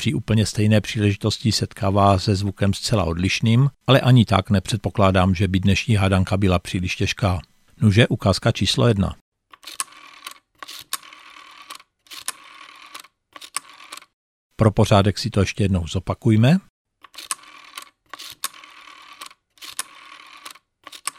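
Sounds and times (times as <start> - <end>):
speech: 0.0 - 9.8, 14.6 - 17.3
rotary telephone dial turning and spinning back: 9.5 - 14.2, 17.0 - 21.1.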